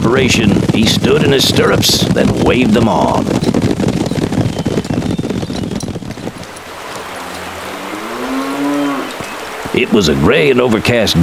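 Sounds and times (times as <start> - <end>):
dense rumbling noise: 0.0 - 11.2
speech: 0.1 - 3.6, 9.8 - 11.2
cattle herd mooing: 6.8 - 9.6.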